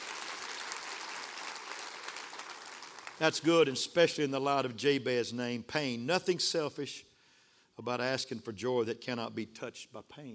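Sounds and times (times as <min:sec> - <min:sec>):
audience clapping: 0:00.0 - 0:03.5
speech: 0:03.2 - 0:07.1, 0:07.8 - 0:10.3.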